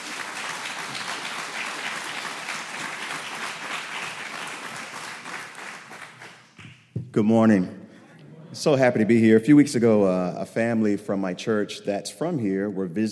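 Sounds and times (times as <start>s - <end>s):
church service audience applause welcoming a guest pastor: 0.0s - 6.6s
speech: 7.2s - 7.8s, 8.6s - 13.0s.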